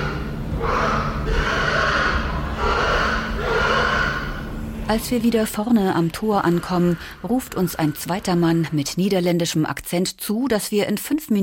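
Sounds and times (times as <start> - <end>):
pigs grunting and snorting in barns: 0.0 - 8.8
low rumble: 0.0 - 9.5
speech: 4.9 - 11.4.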